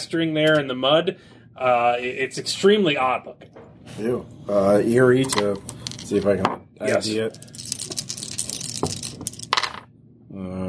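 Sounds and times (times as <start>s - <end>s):
speech: 0.0s - 7.6s, 10.4s - 10.6s
dice rolled on a table: 5.2s - 9.9s.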